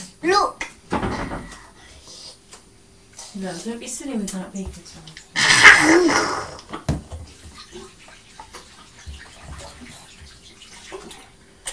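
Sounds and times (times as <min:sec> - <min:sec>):
speech: 0:03.4 - 0:06.7
running tap water while hands are washed: 0:04.6 - 0:11.7.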